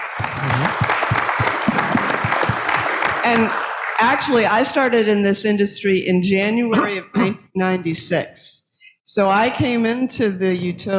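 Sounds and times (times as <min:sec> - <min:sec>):
small crowd audience applause: 0:00.0 - 0:04.2
speech: 0:03.3 - 0:10.9.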